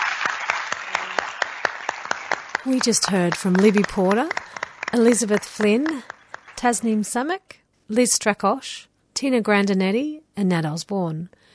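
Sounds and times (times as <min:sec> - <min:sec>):
sharp loud claps: 0:00.0 - 0:06.9
crowd applauding: 0:00.0 - 0:07.2
speech: 0:02.6 - 0:11.5.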